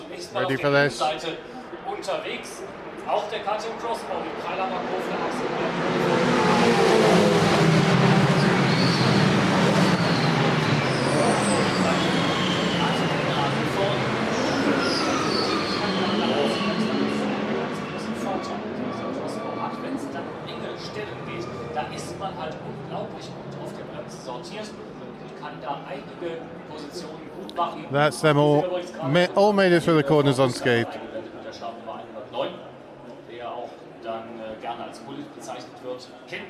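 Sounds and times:
speech: 0:00.2 - 0:07.3, 0:18.4 - 0:31.1
Porsche race cars passing at the start of a 24-hour race: 0:03.2 - 0:25.1.

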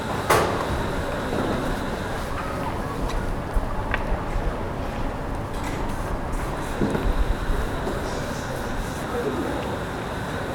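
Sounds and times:
low street rumble at a High Street market setup: 0:00.0 - 0:10.5
scattered voices: 0:00.0 - 0:10.5.

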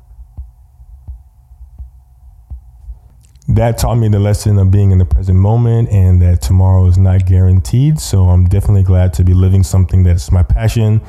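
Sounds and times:
ticking of a heart: 0:00.0 - 0:03.1
speech: 0:03.6 - 0:11.0.

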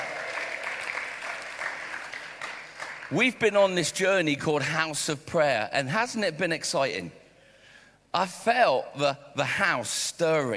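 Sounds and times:
audience cheering and applauding: 0:00.0 - 0:03.2
speech: 0:03.1 - 0:07.2, 0:08.1 - 0:10.5.

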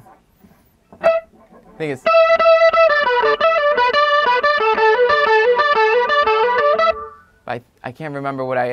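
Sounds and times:
guitar solo through a DOD distortion pedal and a Big Muff: 0:01.0 - 0:07.4
speech: 0:01.8 - 0:02.4, 0:07.5 - 0:08.7.

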